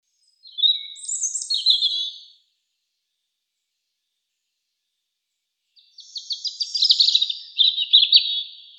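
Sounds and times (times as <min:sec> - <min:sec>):
European robin singing: 0:00.1 - 0:02.5, 0:05.7 - 0:08.7.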